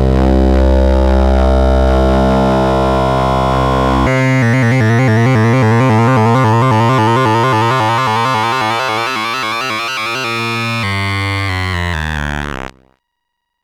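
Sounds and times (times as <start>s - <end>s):
wavetable synth radar sound: 0.2s - 12.7s.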